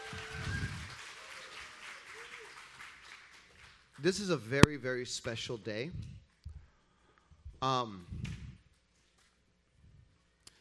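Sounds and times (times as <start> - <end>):
audience applause: 0.0 - 4.3
speech: 4.0 - 6.2, 7.6 - 8.3.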